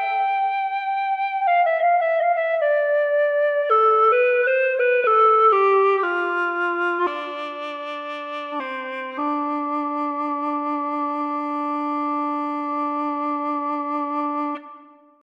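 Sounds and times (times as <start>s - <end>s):
Shan bawu flute: 0.0s - 15.2s.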